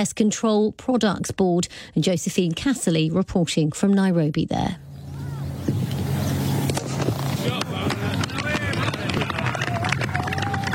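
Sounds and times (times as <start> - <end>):
speech: 0.0 - 4.9
village cricket match ambience: 5.1 - 10.7
leather ball hitting willow bat: 6.6 - 10.1.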